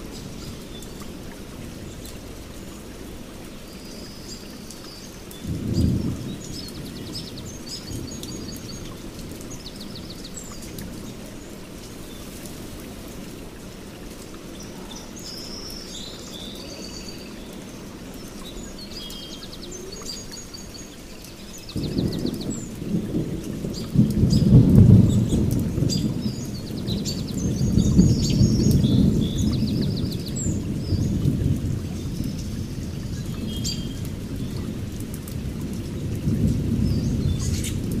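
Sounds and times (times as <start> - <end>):
steady rain pattering around a forest hut: 0.0 - 37.9
thunder rumbling: 5.4 - 9.6, 21.8 - 37.9.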